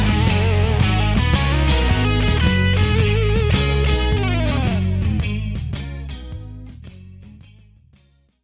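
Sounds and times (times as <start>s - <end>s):
one-man band: 0.0s - 6.6s.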